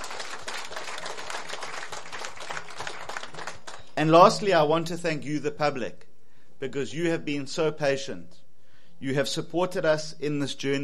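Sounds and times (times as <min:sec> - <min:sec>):
crowd applauding: 0:00.0 - 0:03.9
speech: 0:04.0 - 0:06.0, 0:06.6 - 0:08.4, 0:09.0 - 0:10.8.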